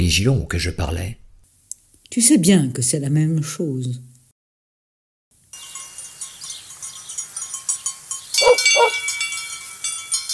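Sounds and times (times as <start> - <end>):
speech: 0.0 - 1.2, 2.1 - 4.1
herd bleating: 8.4 - 9.0
dog-like barks and yips: 8.4 - 9.1.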